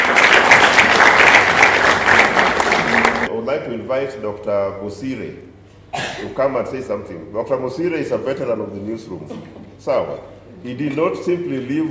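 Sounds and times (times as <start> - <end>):
audience clapping: 0.0 - 3.3
speech: 3.7 - 11.8.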